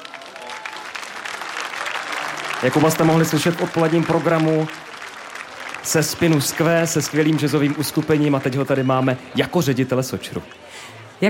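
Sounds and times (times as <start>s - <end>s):
audience applause: 0.0s - 10.7s
speech: 2.6s - 4.8s, 5.9s - 10.6s.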